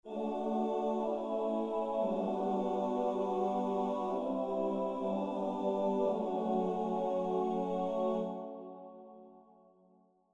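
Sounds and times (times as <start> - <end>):
tenor choir singing: 0.0 - 9.2.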